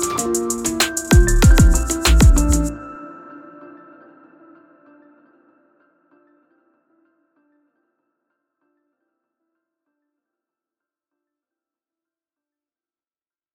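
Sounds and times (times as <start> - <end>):
music in D minor at 96 bpm: 0.0 - 10.2.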